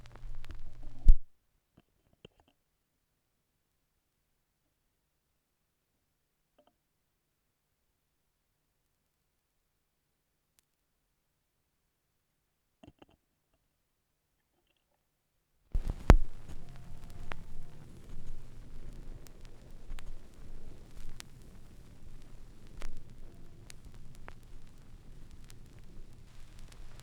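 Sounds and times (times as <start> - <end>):
vinyl record noise: 0.0 - 1.3, 15.7 - 27.0.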